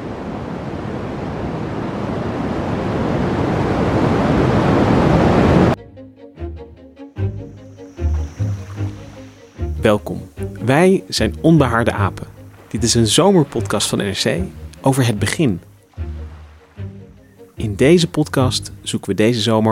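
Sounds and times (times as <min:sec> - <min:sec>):
afterglow of the Big Bang as sound: 0:00.0 - 0:05.8, 0:08.0 - 0:09.7
speech: 0:09.9 - 0:15.7, 0:17.6 - 0:19.6.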